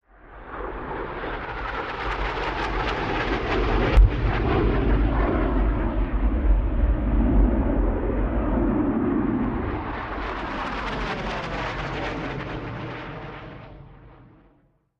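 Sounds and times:
AV-8B Harrier jet: 0.0s - 14.7s
bombs exploding: 4.0s - 4.8s.

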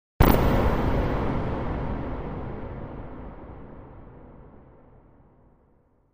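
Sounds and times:
electro static shot: 0.2s - 1.5s.

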